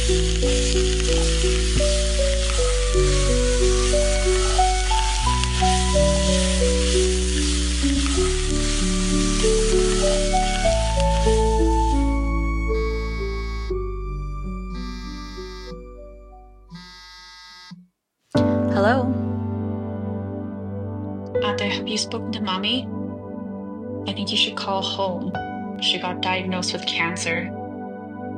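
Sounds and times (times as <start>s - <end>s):
sauce with vinegar boiling in a pan: 0.0s - 13.7s
music: 0.0s - 16.9s, 18.3s - 28.3s
speech: 22.0s - 23.0s, 24.2s - 27.6s.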